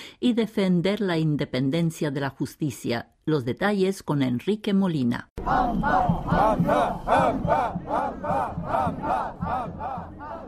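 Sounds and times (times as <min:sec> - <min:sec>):
speech: 0:00.2 - 0:10.2
street protest crowd chanting: 0:05.4 - 0:10.4.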